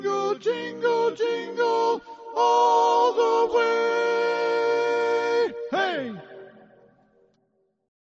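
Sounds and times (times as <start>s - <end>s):
tenor singing a medley: 0.0s - 6.7s.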